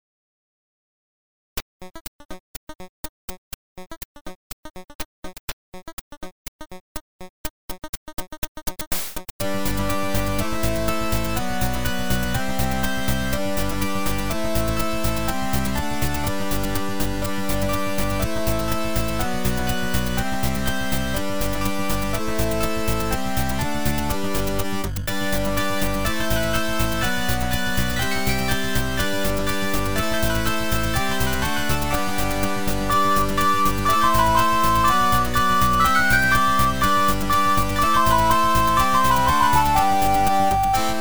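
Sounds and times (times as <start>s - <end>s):
eight-bit music: 9.4s - 40.9s.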